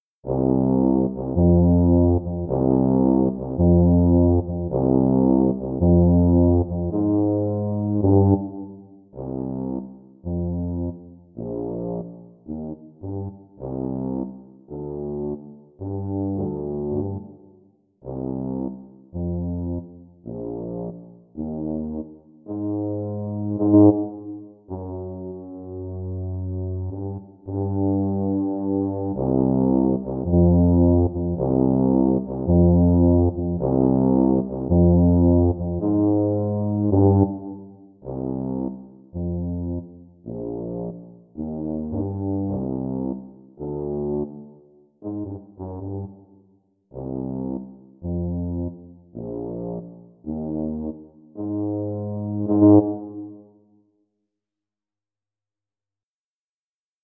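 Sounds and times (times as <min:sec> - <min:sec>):
tuba: 0:00.0 - 0:53.8.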